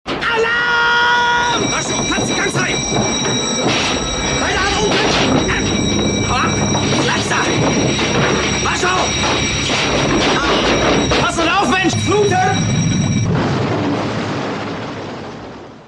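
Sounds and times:
crash dive alarm ringtone: 0:00.7 - 0:14.4.

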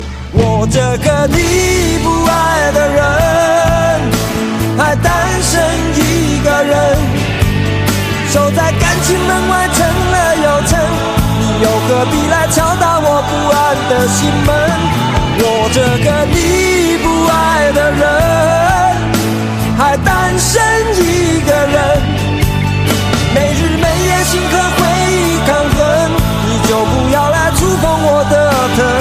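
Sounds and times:
Chinese song: 0:00.0 - 0:29.0.

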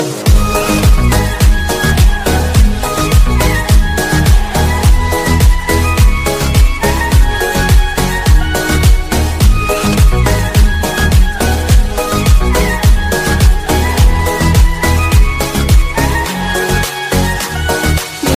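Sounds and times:
Arabic ringtone melody: 0:00.0 - 0:18.3.

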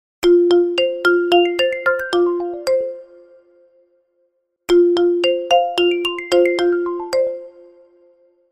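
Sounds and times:
vivo iQOO phone ringtone: 0:00.2 - 0:03.0, 0:04.7 - 0:07.6.

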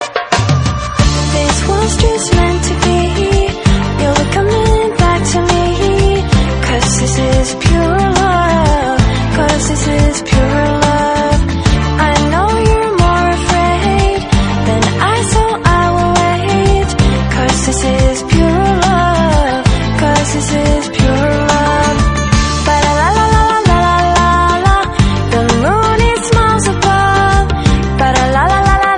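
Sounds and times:
English love song ringtone: 0:00.5 - 0:28.9.

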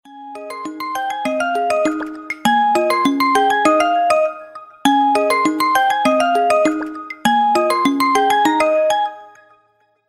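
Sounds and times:
phone ringtone: 0:00.1 - 0:09.6.

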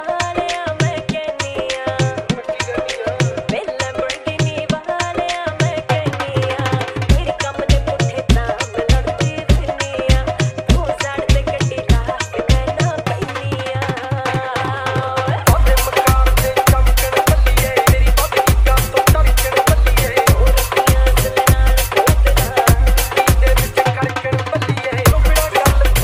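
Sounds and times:
dhol remix ringtone: 0:00.0 - 0:26.0.

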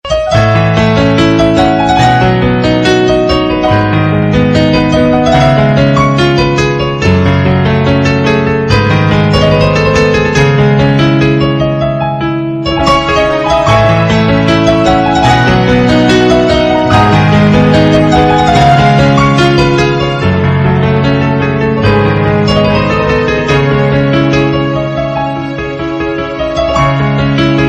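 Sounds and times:
piano melody ringtone: 0:00.0 - 0:27.6.

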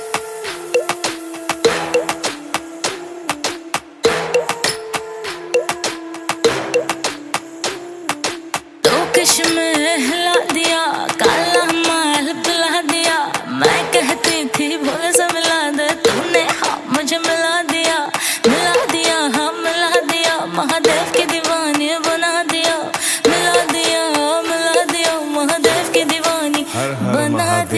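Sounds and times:
Bollywood ringtone music: 0:00.0 - 0:27.7.

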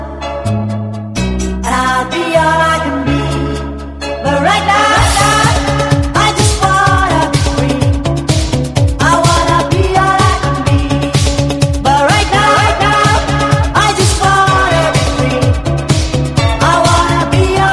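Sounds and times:
English mix ringtone: 0:00.4 - 0:17.7.

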